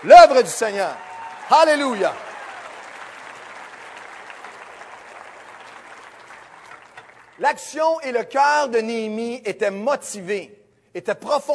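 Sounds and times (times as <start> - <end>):
speech: 0.0 - 2.3, 7.4 - 11.5
audience applauding: 0.0 - 7.5.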